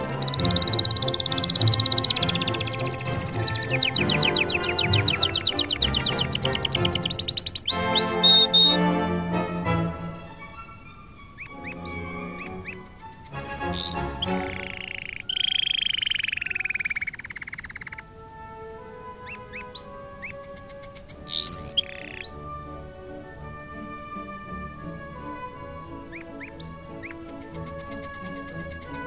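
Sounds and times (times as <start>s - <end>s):
instrumental music: 0.0s - 16.7s, 17.8s - 29.0s
canary song: 0.0s - 29.0s.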